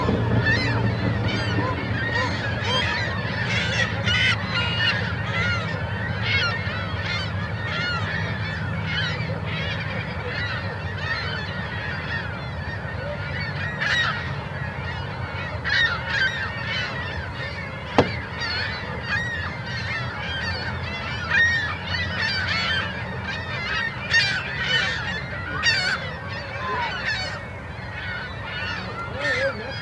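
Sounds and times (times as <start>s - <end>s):
birds in Columbia Park, Kennewick, Washington: 0.0s - 29.8s.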